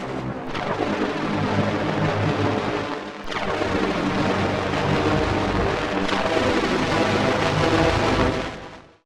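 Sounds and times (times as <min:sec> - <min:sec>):
tense alien sound: 0:00.2 - 0:08.4.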